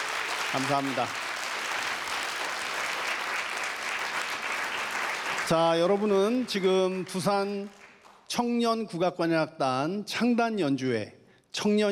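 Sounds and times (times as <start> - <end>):
audience applause: 0.0 - 8.1
speech: 0.5 - 1.2, 5.5 - 11.8.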